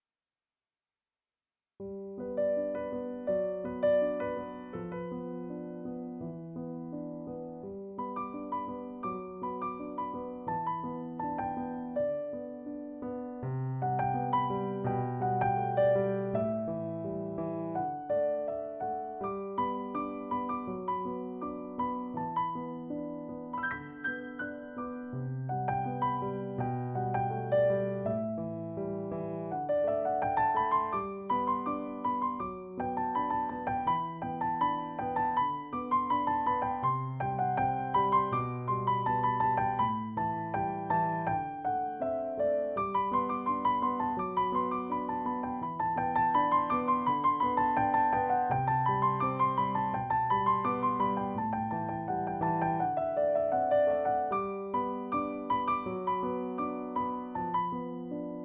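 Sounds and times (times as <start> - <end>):
piano: 1.8 - 58.4.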